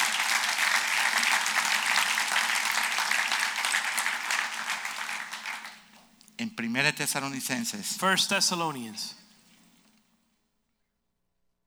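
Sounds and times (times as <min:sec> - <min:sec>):
congregation applauding at a church service: 0:00.0 - 0:06.0
speech: 0:06.4 - 0:09.2.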